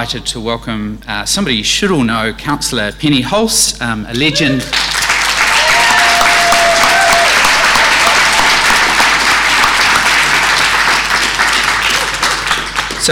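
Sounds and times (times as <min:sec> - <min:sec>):
speech: 0:00.0 - 0:04.9
audience applause: 0:04.2 - 0:13.1.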